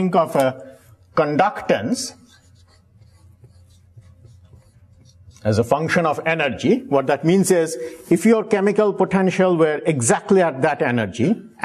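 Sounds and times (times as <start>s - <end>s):
speech: 0.0s - 2.3s, 5.4s - 11.6s
writing on a board during a physics lecture: 0.0s - 6.8s.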